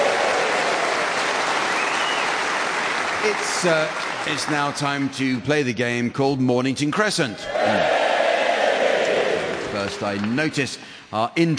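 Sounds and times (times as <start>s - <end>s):
audience applause: 0.0s - 5.1s, 7.6s - 10.2s
speech: 3.2s - 8.0s, 9.8s - 11.5s.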